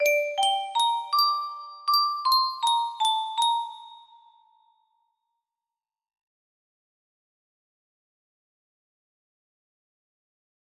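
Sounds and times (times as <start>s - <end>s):
melody: 0.0s - 4.1s.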